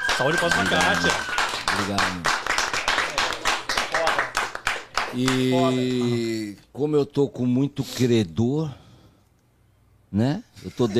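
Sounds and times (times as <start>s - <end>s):
round of applause, hands clapping: 0.0s - 6.2s
speech: 0.2s - 2.4s, 5.2s - 8.8s, 10.1s - 10.9s.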